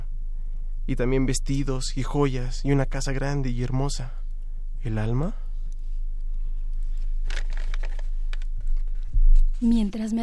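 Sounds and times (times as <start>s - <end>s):
low hum: 0.0s - 10.2s
speech: 0.9s - 4.2s, 4.8s - 5.4s, 9.6s - 10.2s
crisp sheet of paper being pulled out: 7.0s - 9.1s.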